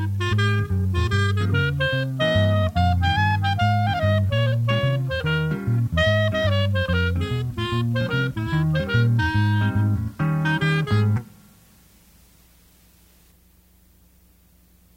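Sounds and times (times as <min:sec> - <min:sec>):
saxophone trio: 0:00.0 - 0:11.6.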